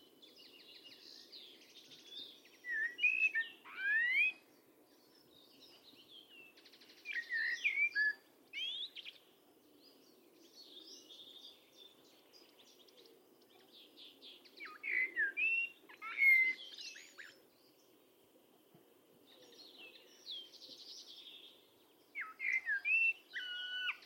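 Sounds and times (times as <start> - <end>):
bird giving sweet whistled chirps and sharp upslurred notes: 2.6 - 4.4, 7.1 - 9.0, 14.6 - 17.3, 22.2 - 24.0.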